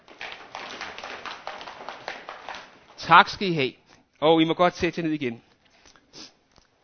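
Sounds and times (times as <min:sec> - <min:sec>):
audience stomping hard on the floor: 0:00.0 - 0:03.1
speech: 0:03.1 - 0:05.5.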